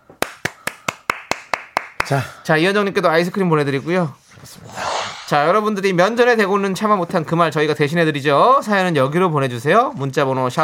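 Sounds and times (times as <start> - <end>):
audience clapping: 0.2 - 2.1
speech: 2.1 - 4.7, 5.3 - 10.6.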